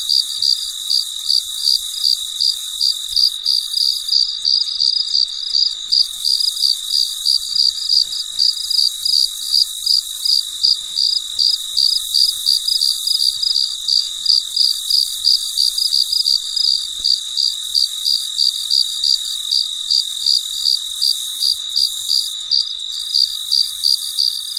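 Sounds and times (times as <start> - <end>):
cricket chirping: 0.0 - 24.5
shrill insect background: 0.0 - 24.5.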